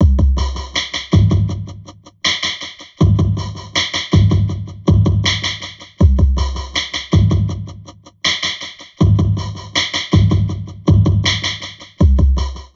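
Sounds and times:
heavily processed drum loop: 0:00.0 - 0:12.7.

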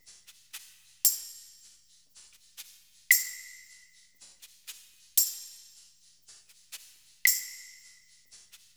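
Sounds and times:
percussion loop: 0:00.0 - 0:08.7.

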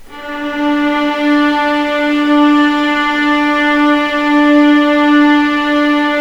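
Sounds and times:
legato D2 note: 0:00.0 - 0:06.1.

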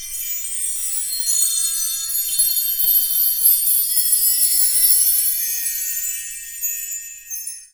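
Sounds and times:
bell tree: 0:00.0 - 0:07.7.

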